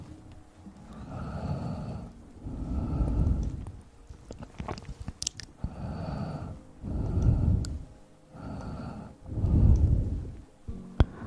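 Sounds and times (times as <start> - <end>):
ear blowing: 1.0 - 3.8, 5.6 - 11.2
wet mouth clicks and crackles: 4.3 - 5.5.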